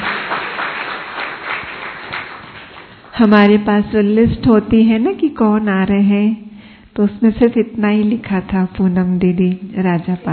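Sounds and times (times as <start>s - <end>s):
audience applause welcoming guests: 0.0s - 3.1s
speech: 3.2s - 10.3s.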